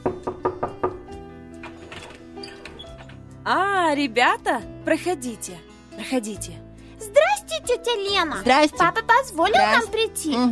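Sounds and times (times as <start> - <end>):
knocking on a door: 0.0 - 1.2
speech: 3.5 - 10.5.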